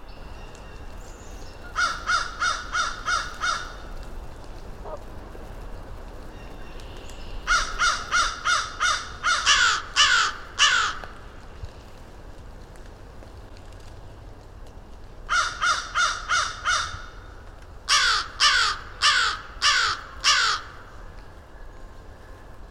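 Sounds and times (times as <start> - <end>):
crows cawing: 1.8 - 3.9, 7.5 - 11.2, 15.3 - 17.2, 17.9 - 20.9.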